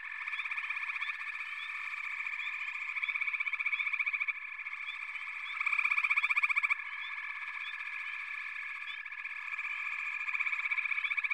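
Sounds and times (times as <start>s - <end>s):
dense chorus of frogs calling in pulsed trills: 0.0s - 11.3s.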